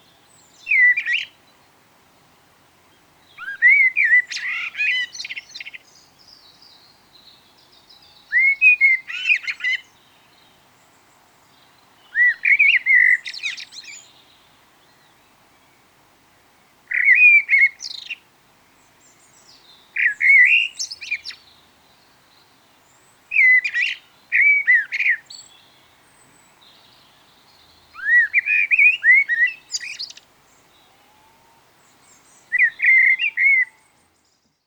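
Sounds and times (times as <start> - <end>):
common blackbird song: 0.0 - 16.0, 16.6 - 34.6.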